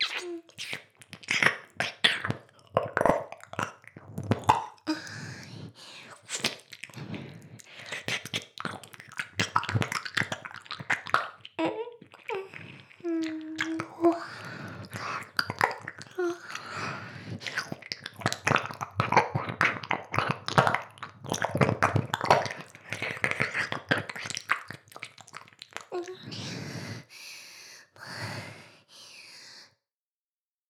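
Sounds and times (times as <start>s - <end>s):
ear licking ASMR: 0.0s - 26.2s.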